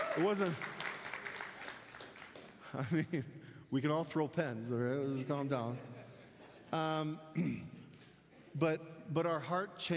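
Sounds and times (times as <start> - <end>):
audience clapping: 0.0 - 3.2
speech: 0.2 - 0.7, 2.7 - 6.0, 6.7 - 7.8, 8.5 - 9.9.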